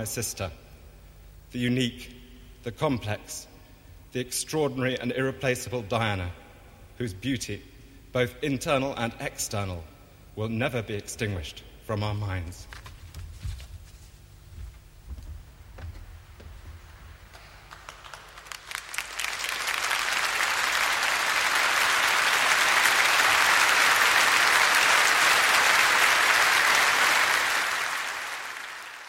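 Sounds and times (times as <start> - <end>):
speech: 0.0 - 0.6, 1.5 - 3.5, 4.1 - 6.4, 7.0 - 12.9
applause from a large crowd: 17.0 - 29.0.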